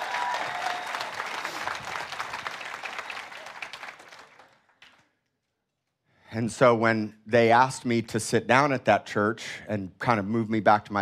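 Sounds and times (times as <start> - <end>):
crowd hand clapping: 0.0 - 5.1
speech: 6.3 - 10.9.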